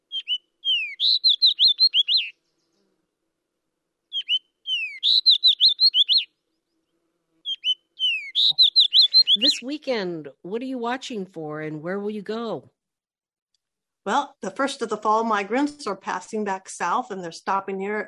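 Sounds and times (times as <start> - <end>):
fox sparrow song: 0.0 - 2.9, 4.1 - 9.7
speech: 9.6 - 12.8, 14.1 - 18.0.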